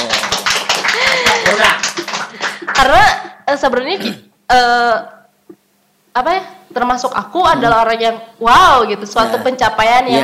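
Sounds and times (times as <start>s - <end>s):
hand clapping: 0.0s - 3.0s
speech: 2.8s - 5.6s, 6.2s - 10.2s.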